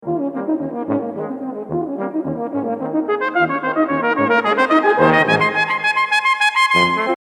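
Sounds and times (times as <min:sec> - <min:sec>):
waltz music: 0:00.1 - 0:07.2.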